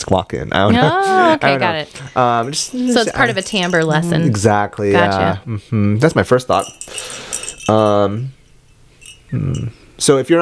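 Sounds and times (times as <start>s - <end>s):
speech: 0.1s - 8.4s, 9.3s - 10.4s
small silver bell ringing: 2.0s - 4.4s, 6.5s - 10.2s.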